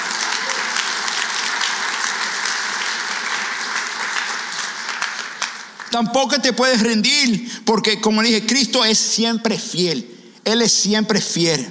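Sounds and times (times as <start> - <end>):
audience applause: 0.0 - 6.0
speech: 6.0 - 11.6.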